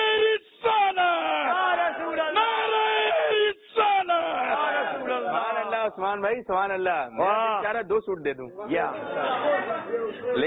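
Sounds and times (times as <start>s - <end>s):
crowd shouting a religious slogan in unison: 0.0s - 6.0s
speech: 5.9s - 10.4s.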